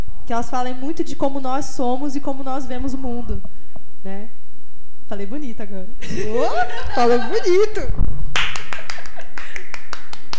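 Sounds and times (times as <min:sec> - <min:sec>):
speech: 0:00.3 - 0:04.4, 0:05.1 - 0:08.3
laughter: 0:06.0 - 0:07.9
people clapping: 0:08.3 - 0:10.3.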